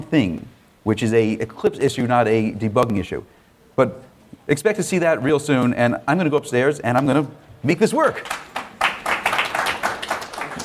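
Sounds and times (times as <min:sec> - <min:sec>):
speech: 0:00.1 - 0:08.5
audience applause: 0:08.2 - 0:10.6.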